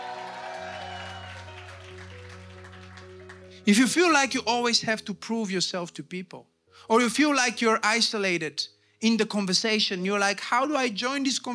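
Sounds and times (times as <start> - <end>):
crowd clapping: 0.0 - 3.6
sustained low keyboard or organ chords: 0.0 - 5.9
speech: 3.6 - 11.5.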